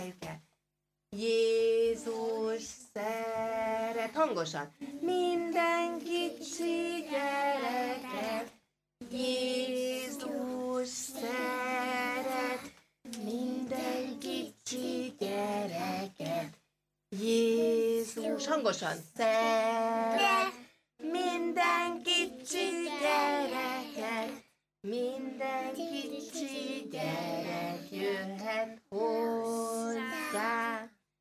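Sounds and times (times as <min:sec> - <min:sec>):
children's song for a kindergarten group: 0:01.1 - 0:31.1.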